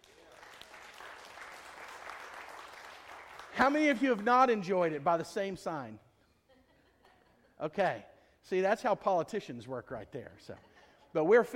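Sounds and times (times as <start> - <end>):
audience clapping: 0.0 - 5.4
speech: 3.6 - 6.0, 7.6 - 11.5.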